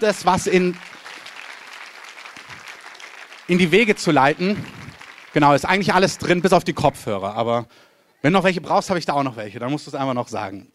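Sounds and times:
speech: 0.0 - 1.0, 3.5 - 10.7
audience applause: 0.0 - 7.2.

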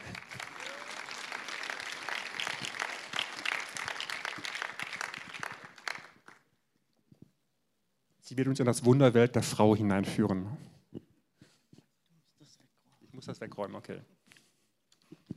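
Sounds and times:
audience applause: 0.0 - 6.4
speech: 8.3 - 10.7, 13.4 - 14.2.

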